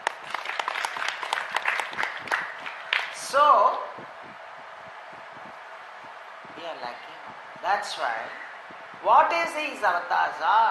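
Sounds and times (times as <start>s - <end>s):
audience clapping: 0.0s - 3.2s
speech: 6.8s - 8.4s, 9.0s - 10.7s.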